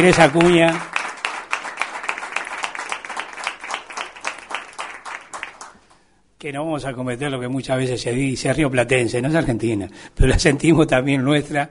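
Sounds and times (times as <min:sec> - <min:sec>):
speech: 0:00.0 - 0:00.9, 0:06.4 - 0:11.6
audience applause: 0:00.0 - 0:05.8.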